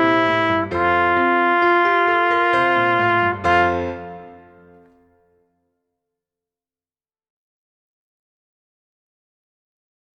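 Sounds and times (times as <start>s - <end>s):
majestic march on trumpet: 0.0s - 4.9s.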